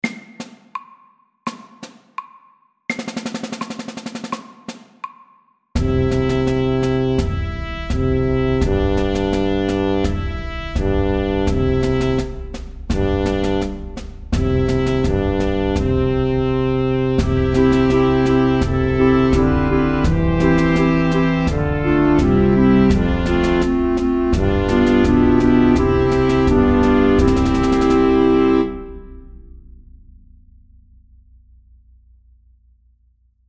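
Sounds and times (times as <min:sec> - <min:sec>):
march: 0:05.8 - 0:28.9.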